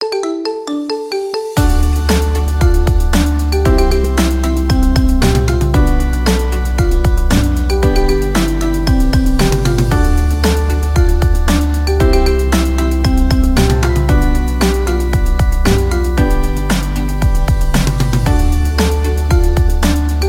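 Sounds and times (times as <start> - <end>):
marimba remix: 0.0 - 20.2.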